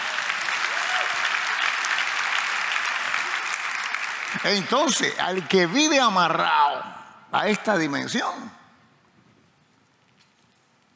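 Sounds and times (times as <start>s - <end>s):
audience applauding: 0.0s - 6.4s
speech: 4.4s - 8.6s.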